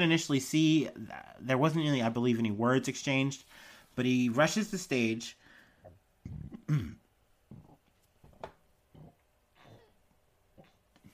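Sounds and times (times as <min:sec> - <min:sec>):
speech: 0:00.0 - 0:05.4, 0:06.3 - 0:07.0
person burping: 0:06.2 - 0:07.7.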